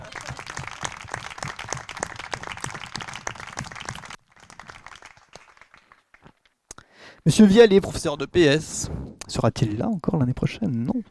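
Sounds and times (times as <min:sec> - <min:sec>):
crowd applause: 0:00.0 - 0:06.3
speech: 0:07.2 - 0:11.1.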